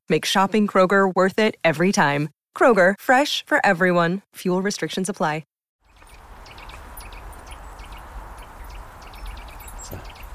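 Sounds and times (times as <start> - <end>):
speech: 0.1 - 5.5
Eurasian nuthatch calls: 5.8 - 10.3.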